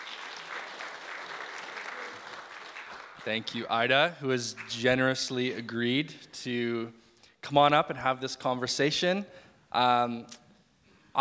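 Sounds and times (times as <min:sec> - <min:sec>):
round of applause: 0:00.0 - 0:03.7, 0:04.5 - 0:04.8
speech: 0:03.2 - 0:10.4.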